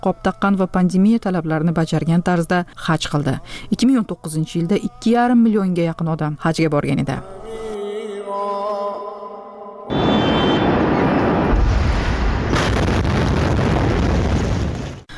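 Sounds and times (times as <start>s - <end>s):
speech: 0.0s - 7.7s
huge explosion recorded on a mobile phone: 9.9s - 15.1s.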